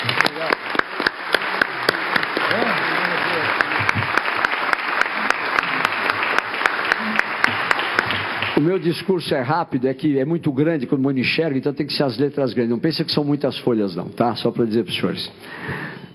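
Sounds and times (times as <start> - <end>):
audience clapping to honour a doctor at a public event: 0.0 - 8.9
speech: 8.7 - 15.9.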